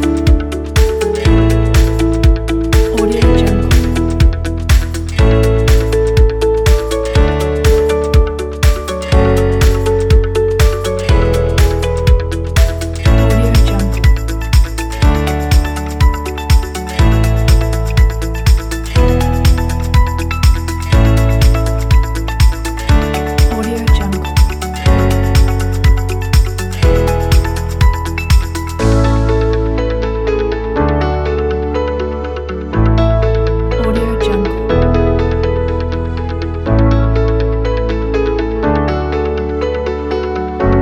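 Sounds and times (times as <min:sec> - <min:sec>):
inspiring upbeat corporate music: 0:00.0 - 0:40.8.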